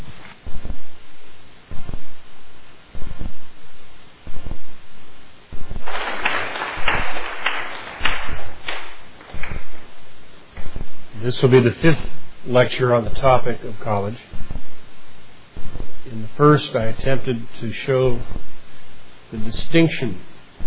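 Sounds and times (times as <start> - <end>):
audience applause welcoming a lecturer: 5.8 - 9.0
speech: 11.4 - 14.3, 16.1 - 18.5, 19.3 - 20.3.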